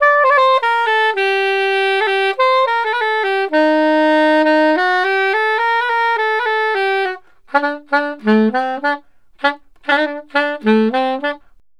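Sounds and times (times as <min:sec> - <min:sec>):
saxophone in Balkan traditional style: 0:00.0 - 0:11.6.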